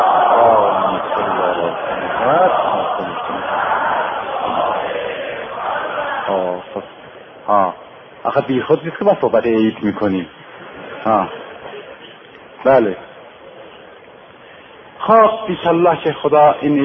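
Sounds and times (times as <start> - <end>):
crowd reciting salawat in unison: 0.0 - 6.4
laughter: 0.3 - 6.5, 10.4 - 12.2
speech: 8.4 - 10.4, 11.0 - 11.4, 12.6 - 13.1, 15.1 - 16.8.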